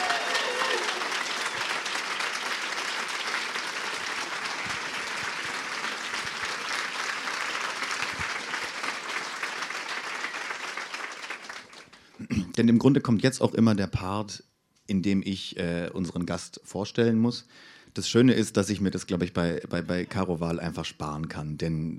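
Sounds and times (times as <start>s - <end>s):
audience applause: 0.0s - 12.2s
speech: 12.6s - 21.9s.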